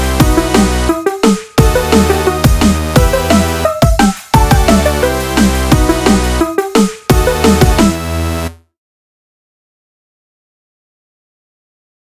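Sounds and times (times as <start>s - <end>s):
instrumental music: 0.0s - 8.6s.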